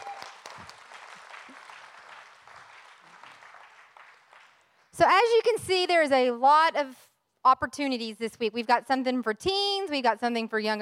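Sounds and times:
audience applause as a group takes its seats: 0.0s - 4.8s
speech: 5.0s - 10.7s.

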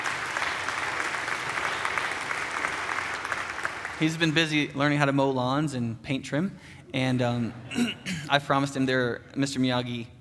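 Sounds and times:
audience clapping: 0.0s - 4.7s
speech: 4.0s - 10.2s.

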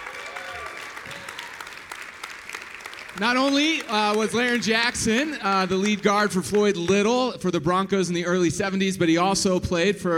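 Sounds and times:
crowd applauding to welcome a guest at a sports interview: 0.0s - 8.0s
speech: 3.2s - 10.1s.

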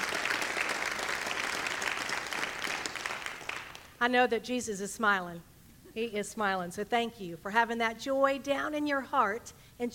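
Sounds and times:
audience applause: 0.0s - 3.9s
speech: 4.0s - 9.9s.

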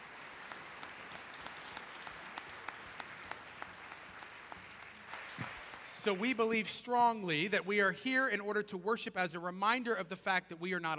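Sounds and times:
audience clapping: 0.0s - 7.1s
speech: 6.0s - 10.9s.

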